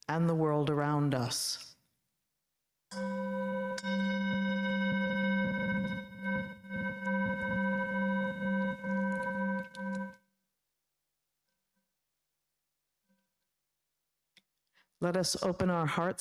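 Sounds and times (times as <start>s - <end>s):
speech: 0.1s - 1.7s, 2.9s - 4.1s, 15.0s - 16.1s
chime ringing: 2.9s - 10.2s.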